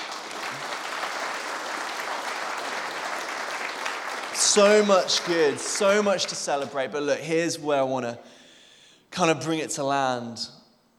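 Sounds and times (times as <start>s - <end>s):
audience applause: 0.0s - 6.4s
speech: 4.4s - 8.4s, 9.2s - 10.6s.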